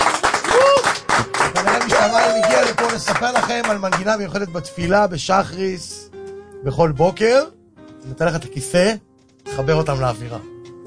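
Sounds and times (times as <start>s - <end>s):
people cheering: 0.0s - 3.8s
crowd clapping: 0.0s - 4.2s
speech: 2.0s - 6.0s, 6.6s - 10.5s.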